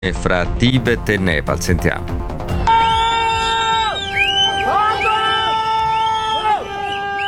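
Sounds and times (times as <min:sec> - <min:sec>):
speech: 0:00.0 - 0:02.4
villagers screaming: 0:02.6 - 0:07.2
villagers whistling: 0:02.7 - 0:07.2.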